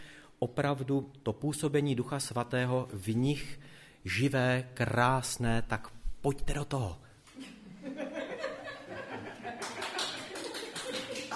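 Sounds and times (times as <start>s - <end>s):
speech: 0.4s - 8.0s
laughter: 7.4s - 11.3s
audience clapping: 9.3s - 11.3s.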